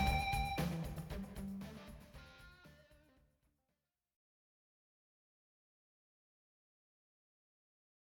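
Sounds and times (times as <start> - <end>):
powerful music: 0.0 - 2.4.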